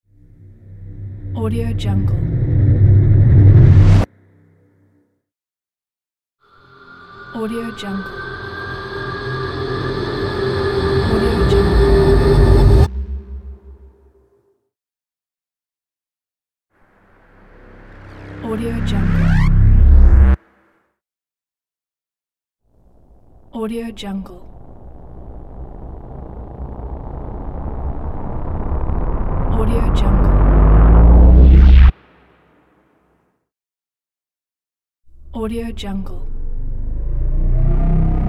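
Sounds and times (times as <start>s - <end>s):
abrupt sci-fi riser: 0.2s - 4.1s, 6.5s - 14.4s, 16.9s - 20.7s, 24.1s - 32.6s, 36.2s - 38.2s.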